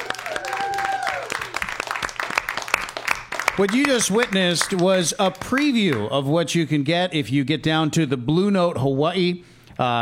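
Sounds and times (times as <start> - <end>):
audience clapping: 0.0 - 6.1
speech: 3.6 - 10.0.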